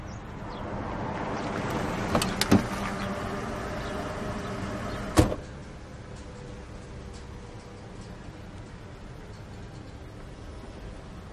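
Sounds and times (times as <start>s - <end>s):
car engine rumble while driving off: 0.0s - 11.3s.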